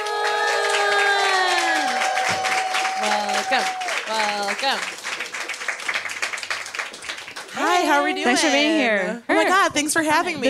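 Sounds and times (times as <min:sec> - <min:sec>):
audience whooping: 0:00.0 - 0:06.1
audience applause welcoming a comedian: 0:00.0 - 0:08.3
speech: 0:03.6 - 0:05.0, 0:07.8 - 0:10.4.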